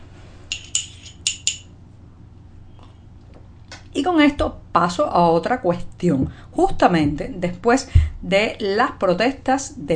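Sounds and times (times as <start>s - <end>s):
low steady hum: 0.0s - 9.9s
glass or ice clinking: 0.5s - 1.7s
speech: 3.9s - 9.9s.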